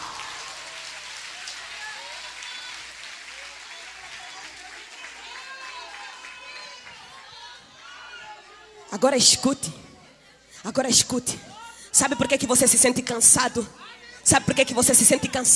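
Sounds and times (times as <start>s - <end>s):
audience applauding: 0.0s - 7.3s
speech: 8.9s - 9.9s, 10.6s - 15.5s.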